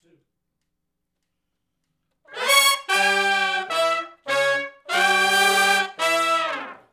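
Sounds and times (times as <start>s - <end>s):
R&B horn riff in E in unison: 2.3s - 6.9s.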